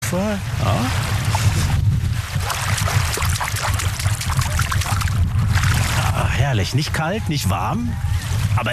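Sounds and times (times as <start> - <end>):
speech: 0.1 - 1.8, 6.3 - 8.7
water splashing as someone swims: 0.6 - 6.4
low rumble: 0.8 - 7.0.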